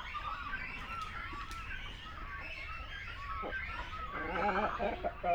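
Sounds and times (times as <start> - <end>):
great cormorant colony calling: 0.1 - 5.3
deep gargling croak: 3.4 - 5.3.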